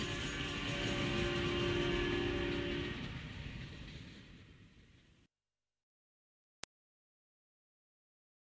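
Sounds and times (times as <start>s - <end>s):
train whistle: 0.0s - 3.3s.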